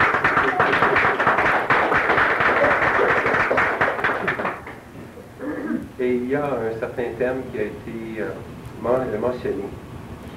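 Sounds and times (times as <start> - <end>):
audience applause: 0.0 - 4.8
speech: 6.3 - 10.3.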